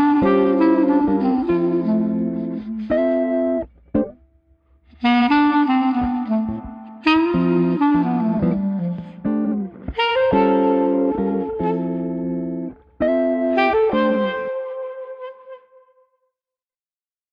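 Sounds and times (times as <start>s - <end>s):
sentimental street clarinet playing: 0.0s - 4.1s, 5.0s - 16.0s.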